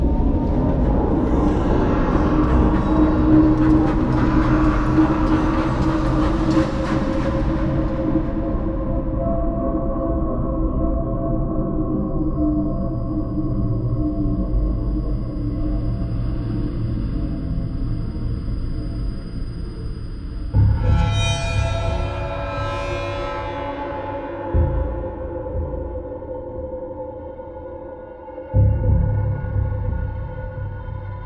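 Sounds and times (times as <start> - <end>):
haunting cinematic trailer music soundscape: 0.0 - 31.2.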